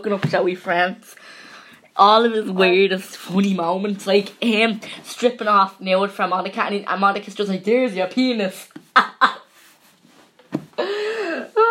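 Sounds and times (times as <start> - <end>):
speech: 0.0 - 1.4, 2.0 - 9.4
person gasping with drawn-out exclamation: 10.8 - 11.6.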